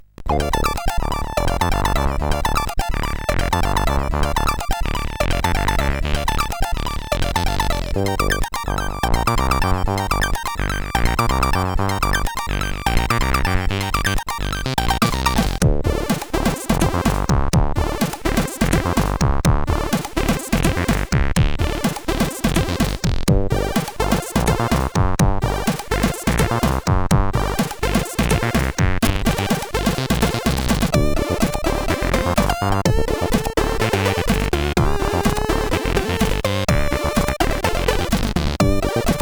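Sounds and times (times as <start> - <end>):
chiptune music on CSG8580R5 chip: 0.3 - 39.2.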